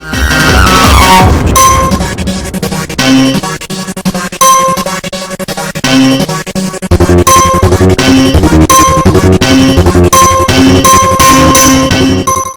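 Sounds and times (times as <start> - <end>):
sped-up distorted remix: 0.0 - 12.4.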